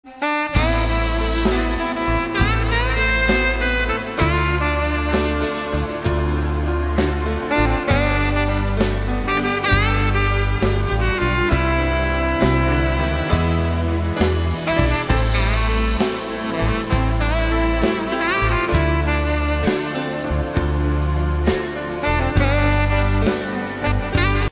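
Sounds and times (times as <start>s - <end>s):
ballad: 0.0s - 24.5s.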